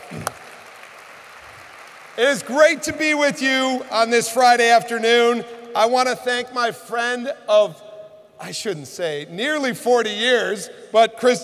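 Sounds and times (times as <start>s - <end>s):
audience applause: 0.0s - 2.6s
speech: 0.1s - 0.4s, 2.2s - 7.8s, 8.4s - 11.4s.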